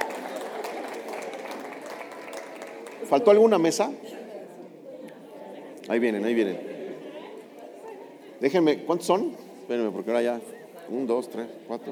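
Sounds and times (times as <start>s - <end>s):
crowd clapping: 0.0s - 3.5s
speech: 3.1s - 4.2s, 5.9s - 6.7s, 8.4s - 11.8s.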